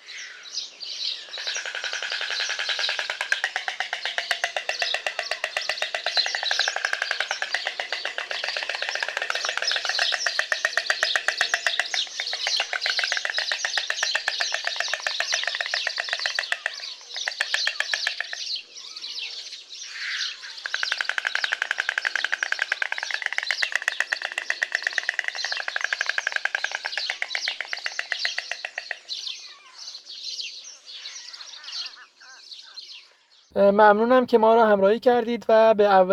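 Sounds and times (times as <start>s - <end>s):
white storks clattering beaks at nest: 1.2s - 18.6s, 20.6s - 29.4s
speech: 33.6s - 36.1s.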